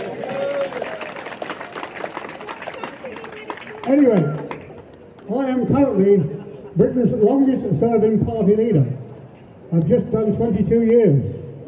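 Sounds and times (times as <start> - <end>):
audience applause: 0.0 - 4.8
crowd cheering: 0.0 - 4.8
speech: 3.9 - 4.4, 5.3 - 9.0, 9.7 - 11.4.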